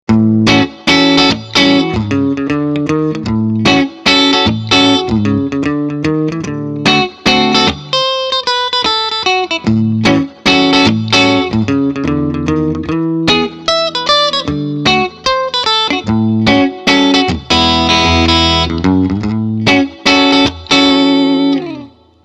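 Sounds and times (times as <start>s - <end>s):
Gretsch G6129 electric guitar, neck and bridge pickups, clean: 0.1s - 22.2s.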